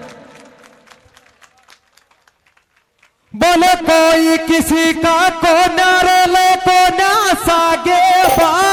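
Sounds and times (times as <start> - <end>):
gathering clapping as a guest is honoured: 0.6 - 2.9
speech: 3.3 - 8.6.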